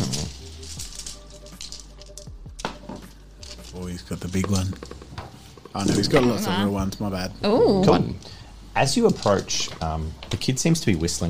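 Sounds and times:
dice being rolled: 0.0s - 6.4s
speech: 3.8s - 5.0s, 5.7s - 11.2s.

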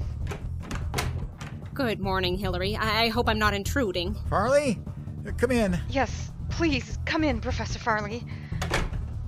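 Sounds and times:
door being opened: 0.2s - 1.9s, 8.6s - 9.1s
speech: 1.8s - 8.4s.

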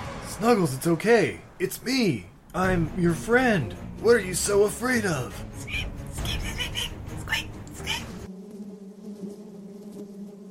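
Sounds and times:
speech: 0.4s - 6.0s
dense droning swarm of bees buzzing: 5.6s - 10.5s.

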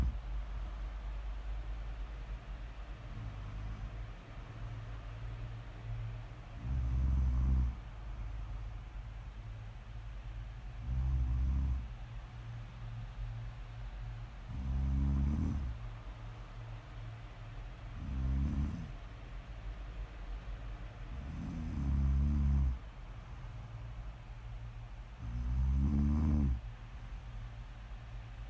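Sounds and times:
quiet breathing: 0.0s - 1.8s, 2.4s - 9.2s, 10.2s - 19.2s, 20.8s - 28.4s
person snoring: 6.6s - 7.8s, 10.8s - 11.8s, 14.5s - 15.7s, 18.0s - 19.0s, 21.2s - 22.8s, 25.2s - 26.6s.

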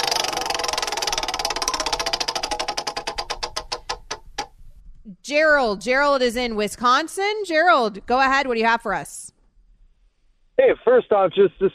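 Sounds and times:
spinning prize wheel ticking: 0.0s - 4.5s
speech: 5.1s - 9.2s, 10.7s - 11.7s.

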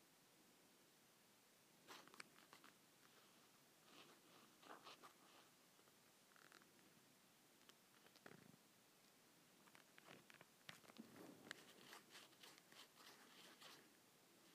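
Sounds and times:
faint steady hiss: 0.0s - 14.5s
leather scratching: 3.9s - 5.5s, 11.0s - 13.9s.

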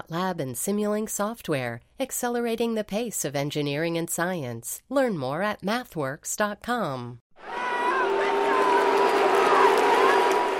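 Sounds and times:
speech: 0.1s - 7.6s
hockey crowd cheering at the TD Garden: 7.4s - 10.5s.

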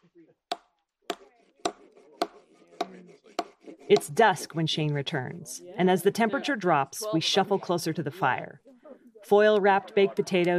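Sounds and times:
wood chopping for a fire: 0.5s - 4.2s
speech: 3.9s - 8.6s, 9.2s - 10.5s
laughter: 6.0s - 10.5s.

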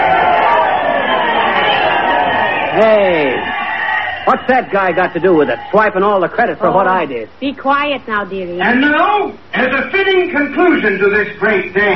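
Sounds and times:
crowd cheering for Mayor Applepuss: 0.0s - 6.6s
speech: 4.3s - 11.9s.

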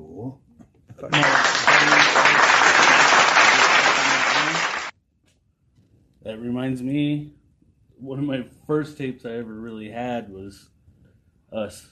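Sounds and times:
speech: 0.0s - 1.5s, 6.6s - 7.4s, 8.0s - 10.7s, 11.5s - 11.8s
applause: 1.1s - 4.9s.

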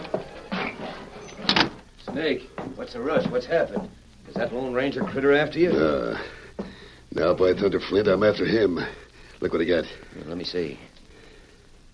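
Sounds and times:
cabin door creaking open: 0.0s - 1.9s
footsteps on a wooden floor: 0.0s - 7.8s
speech: 2.1s - 6.4s, 7.1s - 10.9s.

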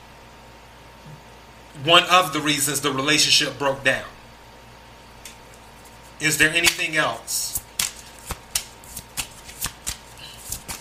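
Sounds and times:
speech: 1.8s - 4.2s, 6.2s - 7.6s
tarot cards being shuffled by hand: 5.3s - 10.8s.

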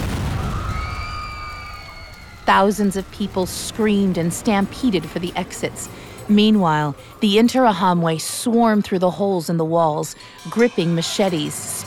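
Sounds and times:
explosion blasting through church walls: 0.0s - 3.2s
speech: 2.5s - 11.8s.

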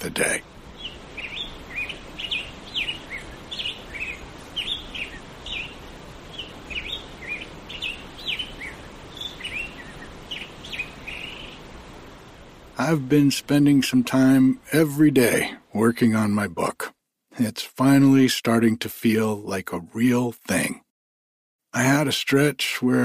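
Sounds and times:
speech: 0.0s - 0.6s, 12.8s - 16.8s, 17.4s - 20.8s, 21.7s - 23.0s
grosbeaks singing at daybreak: 0.0s - 14.4s.

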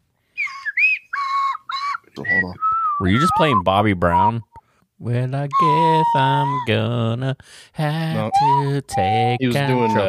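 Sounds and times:
slide whistle: 0.4s - 4.6s, 5.5s - 6.9s, 8.1s - 10.0s
speech: 2.2s - 10.0s.

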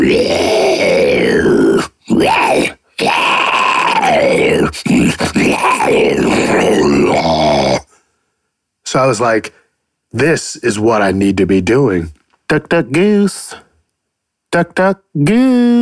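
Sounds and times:
person imitating a zombie with growls and groans: 0.0s - 7.9s
speech: 9.1s - 13.6s, 14.5s - 15.8s.

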